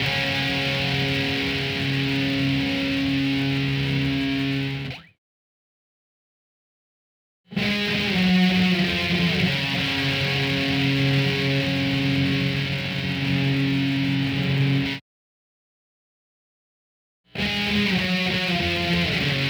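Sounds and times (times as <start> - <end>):
guitar: 0.0 - 5.2, 7.5 - 15.0, 17.3 - 19.4.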